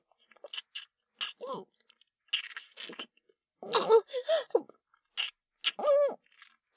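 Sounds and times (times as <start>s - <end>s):
kissing: 0.4s - 3.1s, 5.2s - 5.9s.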